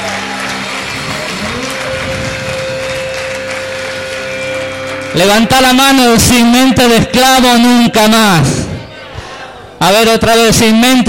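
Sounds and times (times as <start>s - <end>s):
audience applauding passionately: 0.0s - 7.2s
speech: 5.2s - 8.7s, 9.8s - 11.0s.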